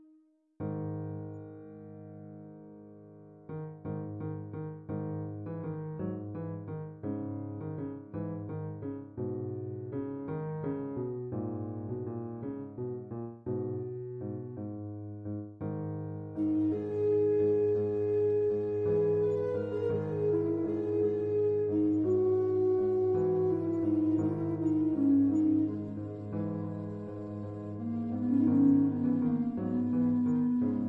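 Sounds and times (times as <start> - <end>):
piano: 0.0 - 30.8
flute quartet: 16.4 - 30.8.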